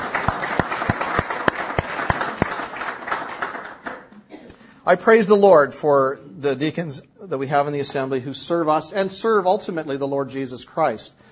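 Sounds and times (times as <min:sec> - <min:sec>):
audience applause: 0:00.0 - 0:04.1
speech: 0:04.9 - 0:11.3.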